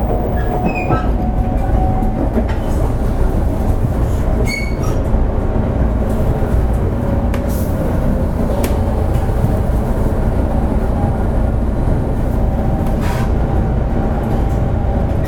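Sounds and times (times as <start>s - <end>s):
Shinkansen 500 series squeals and clicks: 0.0s - 2.6s
Shinkansen 500 series Kodama train rumble on the Sanyo Shinkansen: 0.0s - 15.2s.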